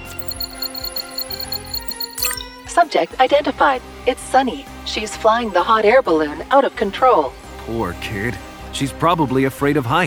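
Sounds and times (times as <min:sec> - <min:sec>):
radar scanning effect rapid high-pitched electronic beeps: 0:00.0 - 0:02.5
speech: 0:02.8 - 0:10.0.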